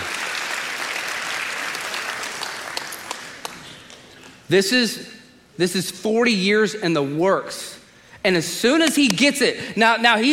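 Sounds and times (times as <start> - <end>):
crowd applauding: 0.0 - 4.1
speech: 4.5 - 10.3.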